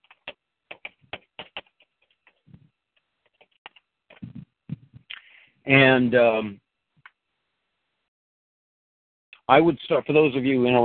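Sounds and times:
typing on a keyboard: 0.0 - 2.5
speech: 5.7 - 6.6, 9.5 - 10.8.

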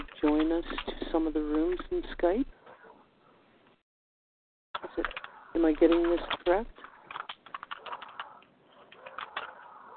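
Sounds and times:
laptop keyboard typing heard over a Skype connection: 0.0 - 2.4, 4.8 - 9.9
speech: 0.2 - 2.6, 5.0 - 6.8.

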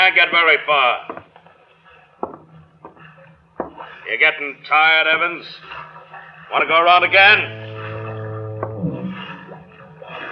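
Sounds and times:
speech: 0.1 - 1.3, 4.1 - 7.7
foghorn: 7.0 - 9.7.

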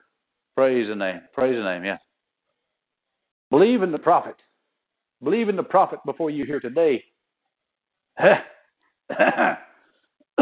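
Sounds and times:
speech: 0.6 - 2.0, 3.5 - 4.5, 5.2 - 7.1, 8.2 - 8.5, 9.1 - 9.6
person clearing throat: 8.3 - 9.8.

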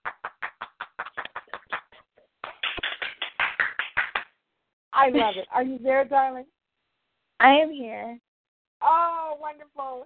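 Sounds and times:
hand clapping: 0.0 - 4.4
speech: 5.0 - 6.6, 7.4 - 8.2, 9.4 - 10.0.

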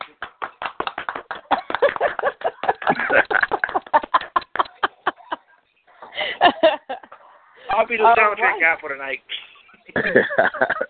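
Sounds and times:
hand claps: 0.0 - 4.9
laughter: 1.3 - 7.4, 9.3 - 10.8
speech: 7.9 - 9.4, 10.0 - 10.8.

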